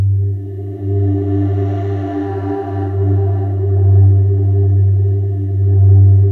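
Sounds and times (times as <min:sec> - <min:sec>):
atmosphere: 0:00.0 - 0:06.3.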